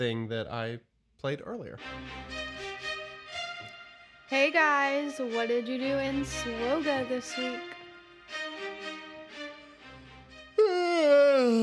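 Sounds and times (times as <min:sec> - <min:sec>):
speech: 0:00.0 - 0:02.4, 0:04.3 - 0:07.7
dramatic intentional yawn: 0:10.6 - 0:11.6.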